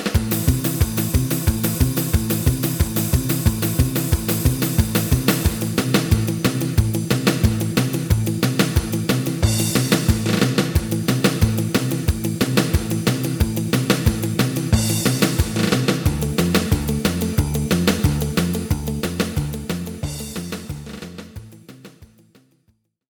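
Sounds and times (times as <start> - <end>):
lead melody: 0.2 - 21.4.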